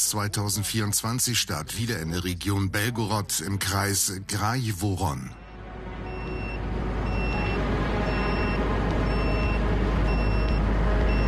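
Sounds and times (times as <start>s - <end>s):
speech: 0.1s - 5.4s
drone detector beeping: 5.4s - 11.2s.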